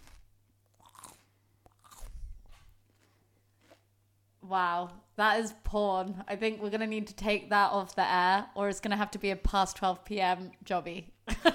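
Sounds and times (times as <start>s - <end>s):
biting into a piece of celery: 0.0s - 3.9s
speech: 4.5s - 11.5s.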